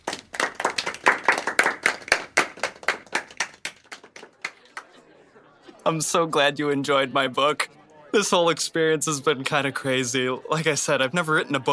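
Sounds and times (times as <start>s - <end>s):
round of applause for honorees: 0.0s - 5.0s
laughter: 0.7s - 11.7s
speech: 5.8s - 11.7s.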